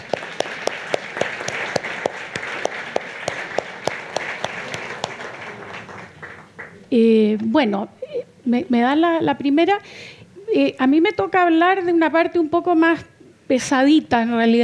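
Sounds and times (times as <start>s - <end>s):
clapper's sharp claps: 0.0s - 6.8s
crowd applause: 0.0s - 6.8s
speech: 6.9s - 14.6s.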